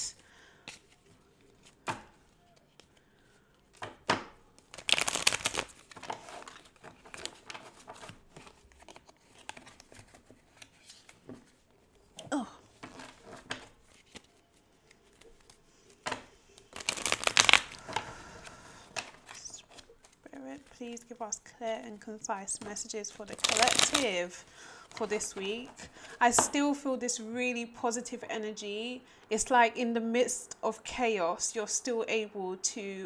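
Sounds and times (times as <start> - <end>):
cards shuffled before a card reading: 0.7 - 21.2, 22.5 - 25.8
speech: 20.9 - 33.0.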